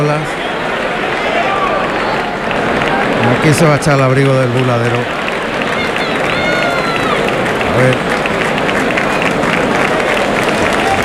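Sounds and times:
speech: 0:00.0 - 0:00.4, 0:03.4 - 0:05.2, 0:07.8 - 0:08.1
bullfight crowd clapping: 0:00.0 - 0:11.0.

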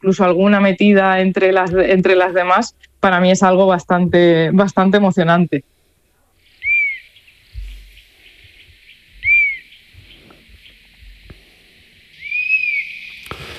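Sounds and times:
speech: 0:00.0 - 0:05.8
honey buzzard whistling call: 0:06.4 - 0:10.8, 0:12.1 - 0:13.5.

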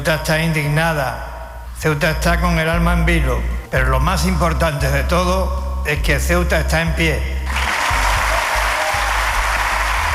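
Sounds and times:
speech: 0:00.0 - 0:07.6
audience applause at an official ceremony: 0:07.5 - 0:10.1.

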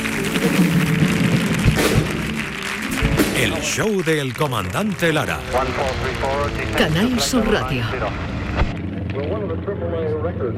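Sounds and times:
audience ovation: 0:00.0 - 0:08.1
speech: 0:03.4 - 0:08.8, 0:09.5 - 0:10.5.

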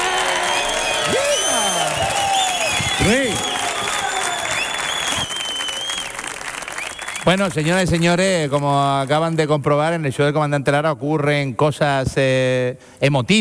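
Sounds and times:
theatre audience cheers and whoops: 0:00.0 - 0:06.2
theatre audience at Auditorio Cartuja clapping at a live comedy show: 0:00.0 - 0:09.5
speech: 0:07.3 - 0:13.3.

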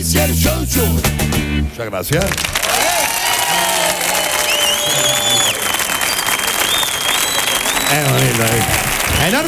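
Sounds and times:
speech: 0:00.0 - 0:03.1, 0:07.9 - 0:09.4
audience applause: 0:02.2 - 0:09.4.

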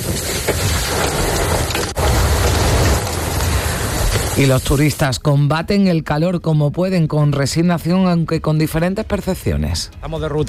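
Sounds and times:
hail clattering on surfaces in Macael: 0:00.0 - 0:04.7
speech: 0:04.4 - 0:10.4.

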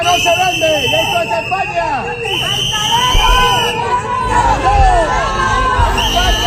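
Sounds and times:
shrill whistles in high sliding tones: 0:00.0 - 0:04.0, 0:05.9 - 0:06.4
loud restless crowd booing and shouting: 0:00.0 - 0:06.4.

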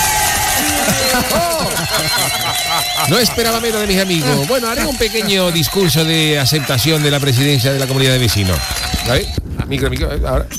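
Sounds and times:
shouted voices in a cheering crowd: 0:00.0 - 0:07.3
crowd applauding a man accepting residents association presidency: 0:00.0 - 0:09.9
laughter: 0:00.4 - 0:10.2
speech: 0:02.3 - 0:10.5.

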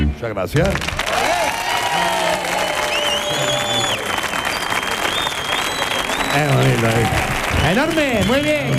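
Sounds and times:
speech: 0:00.2 - 0:01.4, 0:06.3 - 0:08.7
audience applause: 0:00.6 - 0:08.7
audience whistles and cheers: 0:01.1 - 0:08.3.

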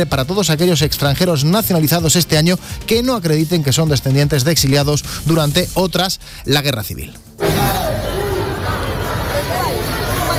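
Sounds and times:
speech: 0:00.0 - 0:07.8
crowd noise during street clashes in the Puerta del Sol: 0:07.4 - 0:10.3.

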